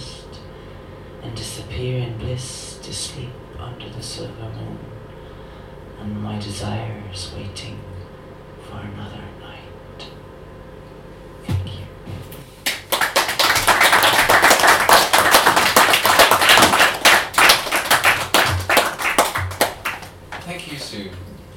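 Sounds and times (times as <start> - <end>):
speech: 1.2 - 5.0, 6.0 - 7.9, 8.7 - 9.5
audience applause: 12.6 - 20.4.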